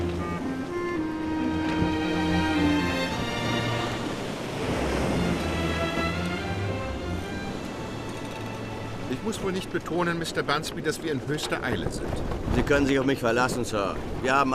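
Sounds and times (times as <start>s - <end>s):
open sea waves: 0.0s - 14.5s
wind at open sea: 0.0s - 14.5s
speech: 9.2s - 14.5s.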